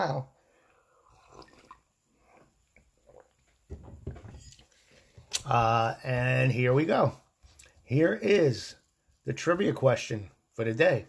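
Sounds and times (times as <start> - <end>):
speech: 0.0 - 0.4, 5.4 - 7.2, 7.9 - 11.0
sipping coffee: 0.8 - 3.7.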